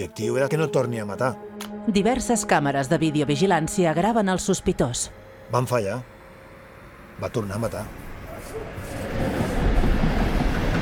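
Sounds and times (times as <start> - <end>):
speech: 0.0 - 6.2, 7.2 - 8.0
train running at night beside a motorway: 4.8 - 10.8.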